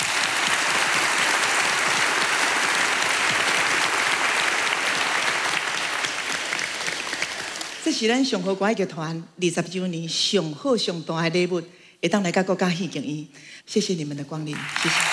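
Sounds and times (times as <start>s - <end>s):
audience applause: 0.0s - 7.9s, 14.6s - 15.1s
speech: 7.9s - 15.1s.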